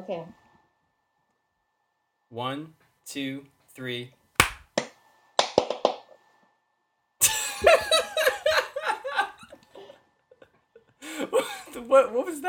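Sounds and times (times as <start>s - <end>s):
speech: 0.0s - 0.4s, 2.3s - 4.2s, 11.9s - 12.4s
hands clapping: 4.4s - 6.0s
laughter: 7.2s - 11.8s.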